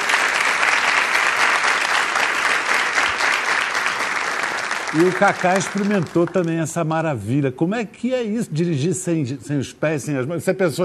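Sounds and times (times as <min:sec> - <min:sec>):
audience applause: 0:00.0 - 0:06.8
speech: 0:04.9 - 0:10.8.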